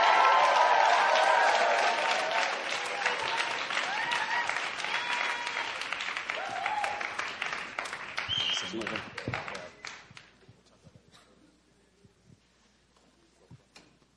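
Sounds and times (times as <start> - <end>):
church congregation applauding: 0.0 - 10.4.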